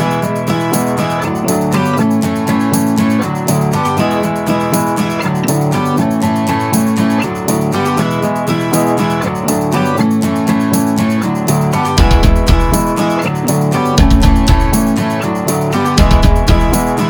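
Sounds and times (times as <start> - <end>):
folk music: 0.1 - 17.0.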